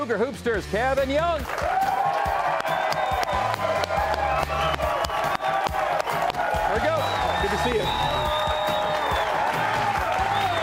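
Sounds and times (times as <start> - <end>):
speech: 0.0 - 2.0
packed studio audience at a college basketball talk show cheering and clapping: 1.4 - 10.6
whoops and shouts: 1.6 - 10.6.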